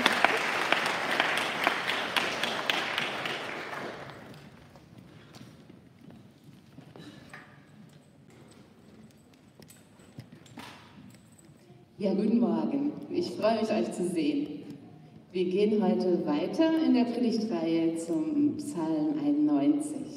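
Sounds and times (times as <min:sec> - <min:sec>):
audience applause: 0:00.0 - 0:04.5
speech: 0:12.0 - 0:14.5, 0:15.4 - 0:20.1.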